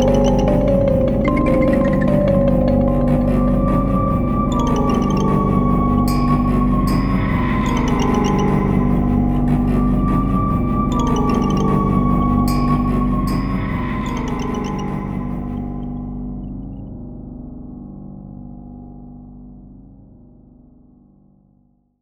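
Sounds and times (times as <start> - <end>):
broken toy horror music box melody: 0.0 - 15.9.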